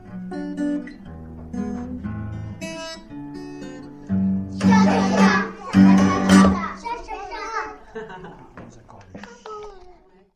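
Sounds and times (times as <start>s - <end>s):
cha cha cha music: 4.5s - 7.0s
laughter: 4.7s - 9.5s.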